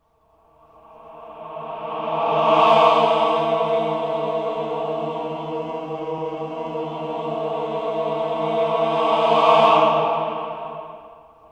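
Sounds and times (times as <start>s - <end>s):
reversed cluster of voices: 0.9s - 11.2s.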